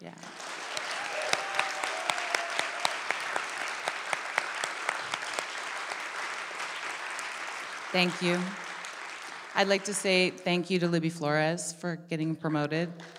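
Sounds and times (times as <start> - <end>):
speech: 0.0 - 0.4, 7.9 - 8.6, 9.6 - 13.1
audience applause: 0.0 - 10.3, 13.0 - 13.1.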